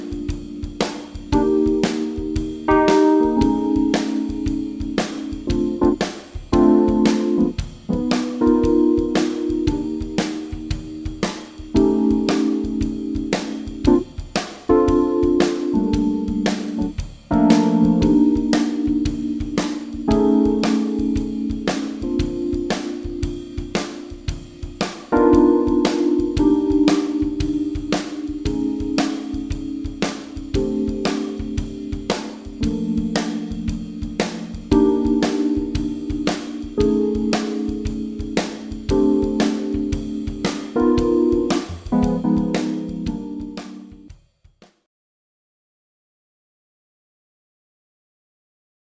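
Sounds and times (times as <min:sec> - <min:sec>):
II V I VI chord progression in Bb without bass: 0:00.0 - 0:44.1.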